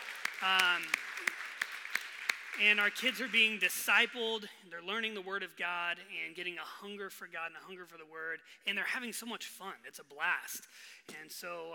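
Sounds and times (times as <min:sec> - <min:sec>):
round of applause: 0:00.0 - 0:04.3
speech: 0:00.4 - 0:01.4, 0:02.6 - 0:11.7.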